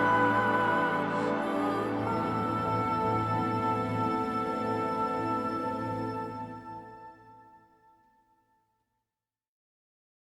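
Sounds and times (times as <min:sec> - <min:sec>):
symphony orchestra playing end-credits film music: 0:00.0 - 0:07.5.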